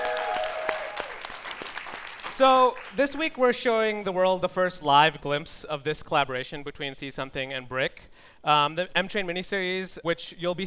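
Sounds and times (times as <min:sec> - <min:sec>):
audience cheering: 0:00.0 - 0:02.1
audience applause: 0:00.0 - 0:03.0
speech: 0:02.4 - 0:10.6.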